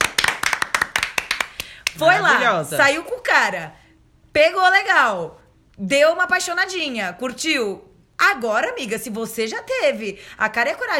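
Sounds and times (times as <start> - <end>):
clapping: 0.0 - 2.5
speech: 2.0 - 3.8, 4.4 - 10.9.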